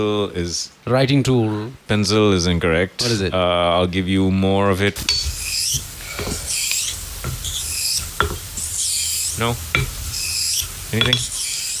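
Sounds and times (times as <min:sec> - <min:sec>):
speech: 0:00.0 - 0:05.3, 0:09.4 - 0:09.9, 0:10.9 - 0:11.4
razor blade sharpened on a whetstone: 0:05.4 - 0:11.7.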